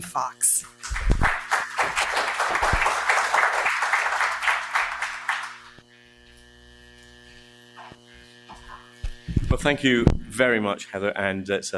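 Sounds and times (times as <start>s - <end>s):
speech: 0.0s - 1.2s, 9.5s - 11.7s
audience applause: 0.8s - 5.7s.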